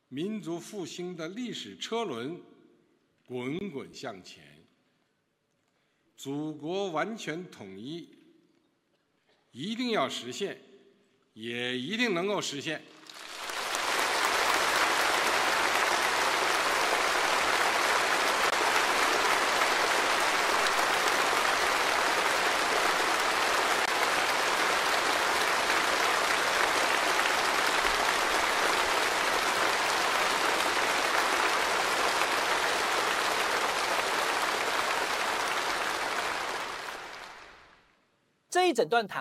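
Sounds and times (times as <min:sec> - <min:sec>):
speech: 0:00.1 - 0:02.5, 0:03.3 - 0:04.6, 0:06.2 - 0:08.2, 0:09.5 - 0:10.7, 0:11.4 - 0:13.0, 0:38.7 - 0:39.2
long applause of a congress audience: 0:13.0 - 0:37.8.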